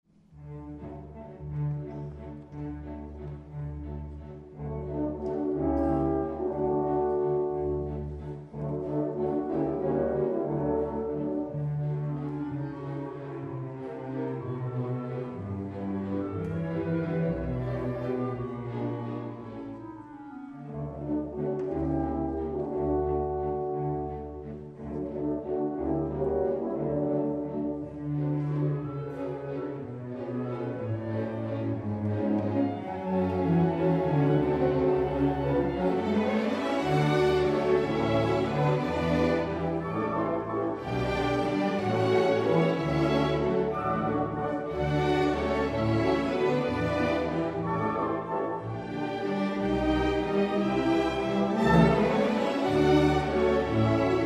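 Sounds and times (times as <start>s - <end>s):
orchestra playing a waltz: 0.1s - 54.2s.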